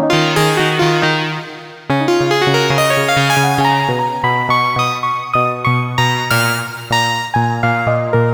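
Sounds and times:
short synth keys: 0.1s - 8.1s.

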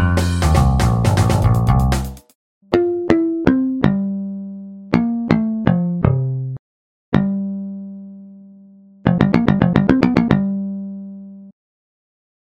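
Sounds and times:
picked electric bass: 0.0s - 2.2s, 2.8s - 6.6s, 7.2s - 8.1s, 9.1s - 11.4s.

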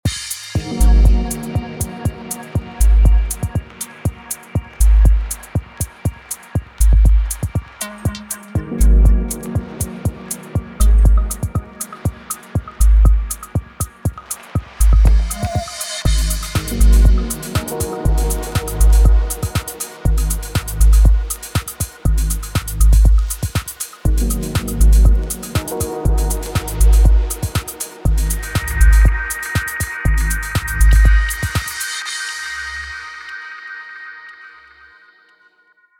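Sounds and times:
dub tech bass: 0.6s - 5.7s, 6.8s - 7.6s, 8.2s - 13.9s, 14.8s - 31.7s.

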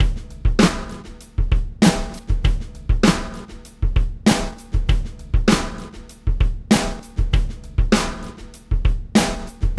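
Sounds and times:
snare drum: 0.0s - 9.7s.

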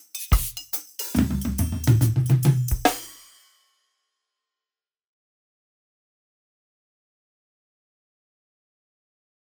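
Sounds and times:
standard reggae drum beat: 0.0s - 3.5s.

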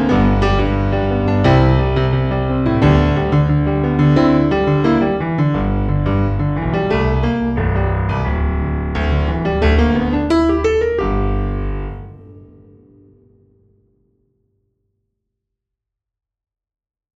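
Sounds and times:
bass funk music: 0.0s - 13.0s.

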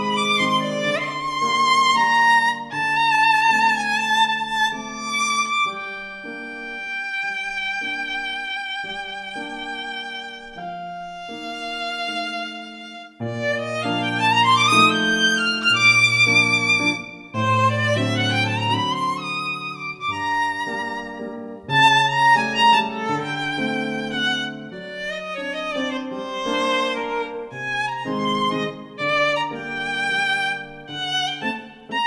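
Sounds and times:
viola playing a waltz: 0.0s - 32.0s.

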